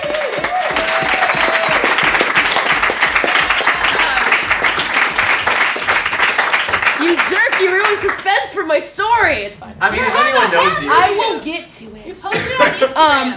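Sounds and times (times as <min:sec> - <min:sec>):
audience applause: 0:00.0 - 0:08.3
speech: 0:08.2 - 0:13.3
laughter: 0:09.9 - 0:10.8, 0:12.3 - 0:13.3.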